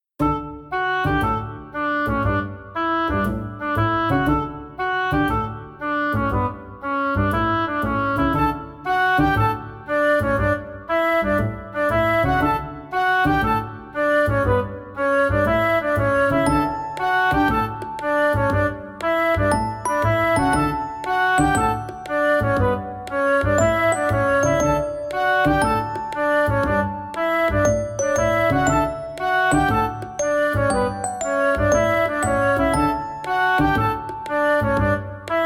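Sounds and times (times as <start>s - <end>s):
cute cheerful everyday background music with a toy box feel: 0.2s - 35.4s.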